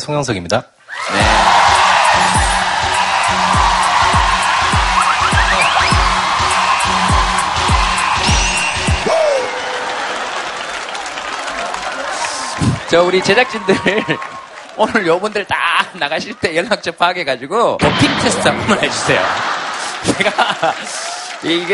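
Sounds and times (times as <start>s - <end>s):
speech: 0.0s - 1.6s, 12.9s - 19.5s, 20.1s - 21.7s
whoops and cheers: 0.9s - 14.7s
studio audience applauding: 0.9s - 15.9s, 18.8s - 21.7s
rhythmic low thumping: 1.2s - 9.1s
laughter: 18.5s - 21.4s.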